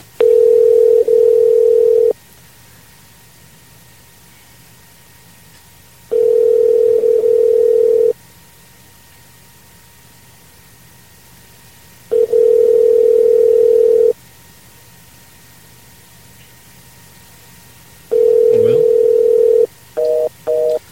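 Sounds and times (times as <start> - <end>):
telephone busy signal: 0.2 - 2.2, 6.1 - 8.2, 12.1 - 14.2, 18.1 - 20.9.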